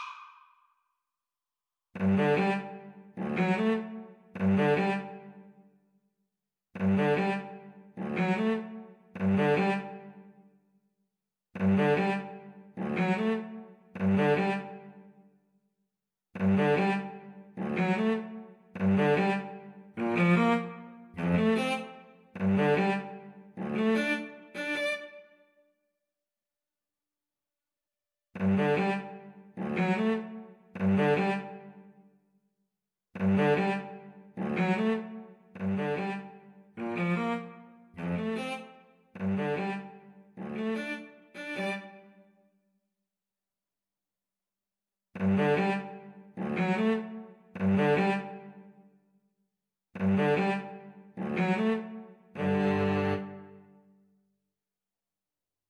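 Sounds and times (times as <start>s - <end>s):
viola: 2.0s - 5.3s, 6.8s - 10.1s, 16.5s - 25.3s, 28.5s - 31.7s, 33.2s - 42.0s, 45.2s - 48.5s, 50.0s - 53.7s
cello: 2.0s - 5.6s, 6.8s - 10.4s, 11.6s - 15.2s, 16.4s - 25.3s, 28.4s - 32.0s, 33.2s - 42.2s, 45.2s - 48.8s, 50.0s - 53.9s.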